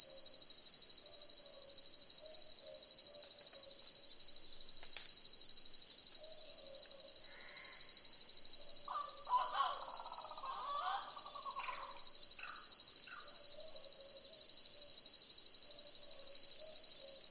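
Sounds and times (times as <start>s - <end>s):
boobook owls calling in chorus: 8.9s - 12.6s.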